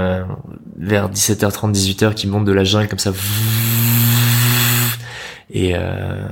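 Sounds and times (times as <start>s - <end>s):
speech: 0.1s - 3.8s, 5.5s - 6.3s
voice imitating buzzing mosquito swarm: 3.2s - 5.1s.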